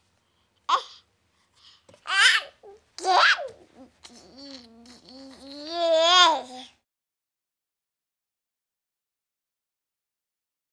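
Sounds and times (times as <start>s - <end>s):
baby vocalizing playfully: 0.7s - 1.0s, 2.0s - 6.7s.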